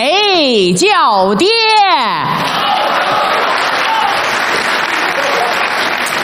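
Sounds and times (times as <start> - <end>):
speech: 0.0 - 2.5
audience applauding: 2.4 - 6.2.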